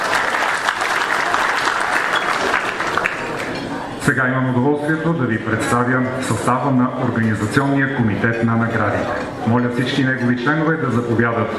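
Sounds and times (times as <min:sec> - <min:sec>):
audience applause: 0:00.0 - 0:03.7
speech: 0:04.1 - 0:11.5.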